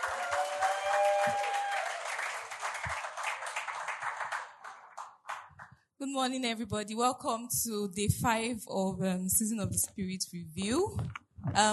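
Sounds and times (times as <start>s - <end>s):
audience applause: 0.0s - 5.7s
speech: 6.0s - 11.7s.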